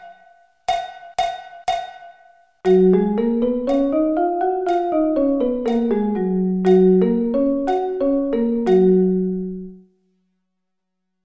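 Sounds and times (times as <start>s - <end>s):
G flat musical scale: 2.7s - 9.8s.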